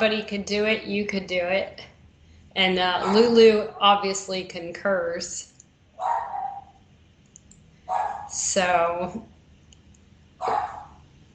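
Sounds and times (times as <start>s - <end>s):
speech: 0.0s - 1.9s, 2.6s - 6.1s, 8.3s - 9.3s, 10.4s - 10.8s
locked-away dog barking: 3.0s - 3.4s, 6.0s - 6.8s, 7.9s - 8.4s, 10.4s - 11.0s.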